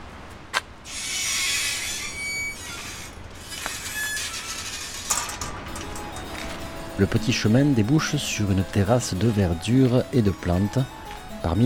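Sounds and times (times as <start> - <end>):
small gate creaking: 0.8 - 7.6
speech: 7.0 - 11.6.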